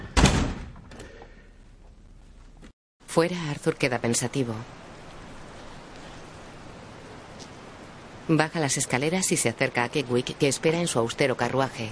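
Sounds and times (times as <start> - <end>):
heavy office door slamming: 0.0 - 0.8
speech: 3.1 - 4.9, 8.3 - 11.9.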